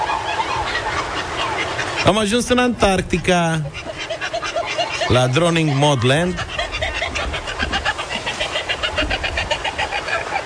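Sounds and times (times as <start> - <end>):
birds calling in Antarctica: 0.0 - 10.4
low rumbling wind-like noise: 0.0 - 10.4
speech: 2.0 - 3.9, 5.1 - 6.5.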